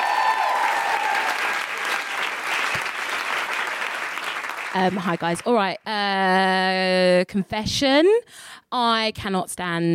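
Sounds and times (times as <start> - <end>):
crowd audience applause: 0.0 - 5.6
speech: 4.7 - 9.9.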